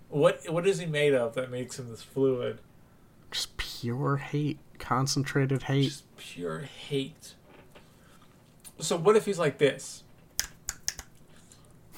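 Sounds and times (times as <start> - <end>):
speech: 0.2 - 2.7, 3.3 - 7.4, 8.8 - 10.0
finger snaps: 10.4 - 11.2.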